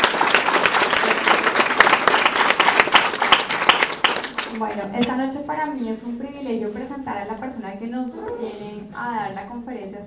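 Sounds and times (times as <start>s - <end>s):
loud audience applause: 0.0s - 4.6s
speech: 4.6s - 10.0s.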